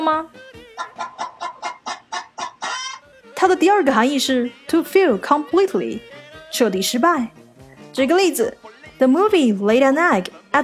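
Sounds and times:
speech: 0.1 - 1.1, 3.4 - 7.4, 8.0 - 10.6
hen clucking: 0.8 - 3.2.

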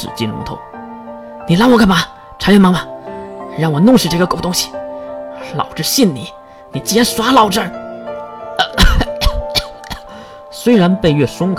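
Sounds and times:
speech: 0.0 - 0.8, 1.5 - 2.9, 3.6 - 4.8, 5.4 - 7.8, 10.6 - 11.5
coughing: 8.6 - 10.3.

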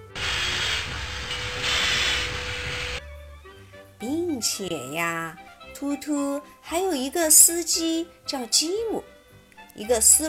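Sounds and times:
train brake hissing: 0.0 - 3.0
speech: 4.0 - 9.1, 9.8 - 10.2.

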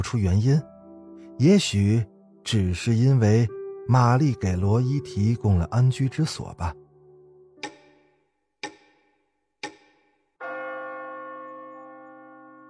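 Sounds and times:
speech: 0.0 - 0.7, 1.4 - 6.8
grandfather clock striking midnight: 10.4 - 12.6.

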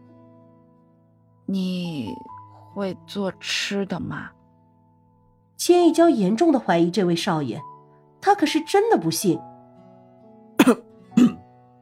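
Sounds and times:
speech: 1.5 - 4.4, 5.6 - 9.5, 10.6 - 10.8
man giving awkward throaty coughs: 10.6 - 11.4.

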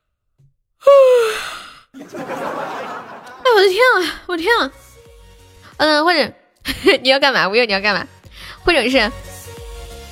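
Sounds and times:
person yawning: 0.8 - 1.8
laughter: 2.0 - 4.1
speech: 3.6 - 4.8, 5.8 - 9.3.

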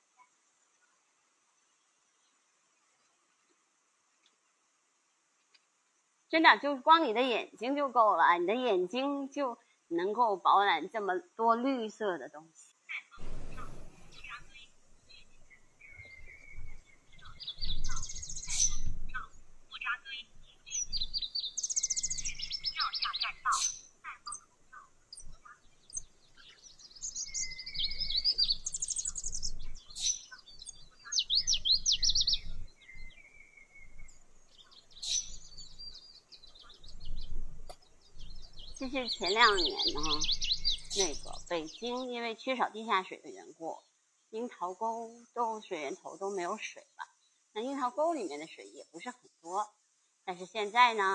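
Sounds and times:
speech: 6.3 - 12.7, 38.9 - 40.4, 41.0 - 47.0, 47.6 - 51.1
low rumbling rustling: 13.2 - 38.9
wild birds singing in a park: 13.2 - 42.7.

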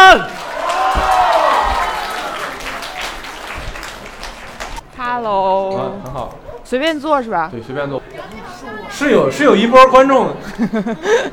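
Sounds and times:
audience applause welcoming guests: 0.0 - 4.8
speech: 6.7 - 11.3
laughter: 10.3 - 11.3.

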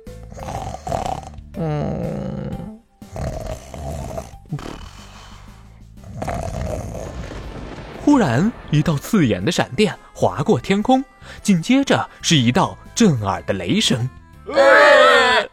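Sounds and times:
voice imitating a pig snoring with grunts: 0.0 - 7.4
speech: 0.3 - 0.7, 8.2 - 15.0.

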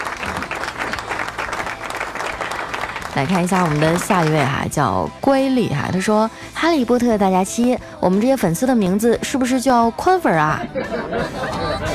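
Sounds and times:
crowd applauding: 0.0 - 4.7
speech: 3.2 - 11.9
laughter: 10.4 - 11.9.

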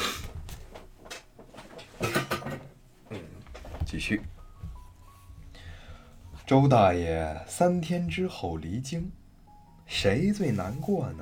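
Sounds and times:
chair being moved: 0.0 - 4.9
speech: 4.0 - 4.4, 6.5 - 9.2, 9.9 - 11.1.

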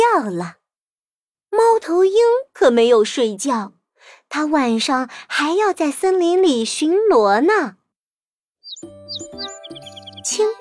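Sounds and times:
speech: 0.2 - 0.6, 1.5 - 7.8, 8.8 - 10.5
lark chirping in the early morning: 8.6 - 10.5.

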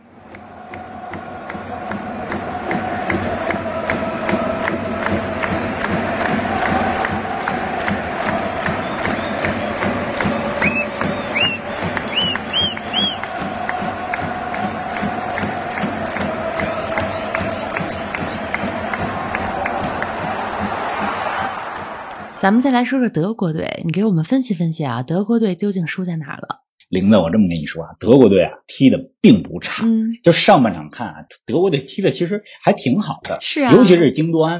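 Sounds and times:
Japanese fans cheering: 0.0 - 24.6, 33.4 - 34.3
speech: 22.4 - 34.5.

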